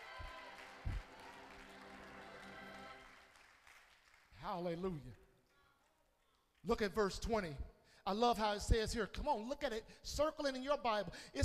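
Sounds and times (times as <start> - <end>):
crowd clapping: 0.0 - 6.9
speech: 4.4 - 5.2, 6.6 - 11.4.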